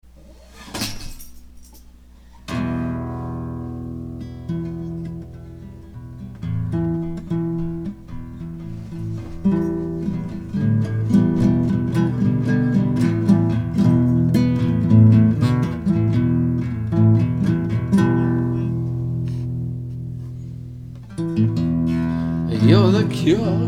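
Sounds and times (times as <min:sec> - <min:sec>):
instrumental music: 0:02.5 - 0:23.6.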